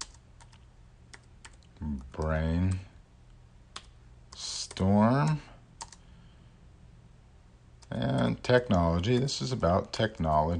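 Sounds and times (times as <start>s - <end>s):
typing on a computer keyboard: 0.0s - 2.8s, 3.7s - 6.0s
speech: 1.8s - 2.9s, 4.8s - 5.5s, 8.5s - 10.5s.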